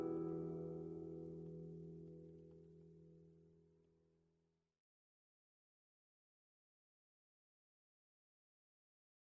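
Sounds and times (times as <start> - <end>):
acoustic music: 0.0 - 2.5.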